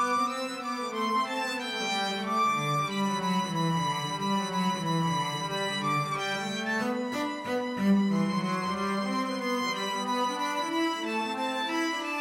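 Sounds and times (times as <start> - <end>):
violin and cello duet: 0.0 - 12.1.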